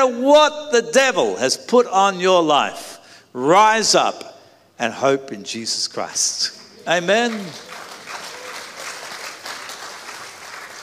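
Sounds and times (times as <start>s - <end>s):
speech: 0.0s - 7.8s
audience applauding: 6.8s - 10.8s.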